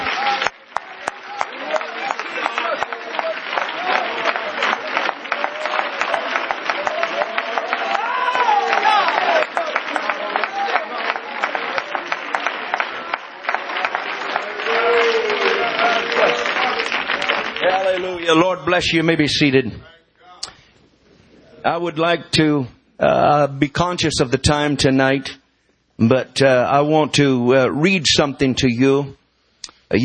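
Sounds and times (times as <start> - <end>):
audience applause: 0.0 - 18.8
speech: 18.6 - 19.9, 21.6 - 25.4, 26.0 - 29.2.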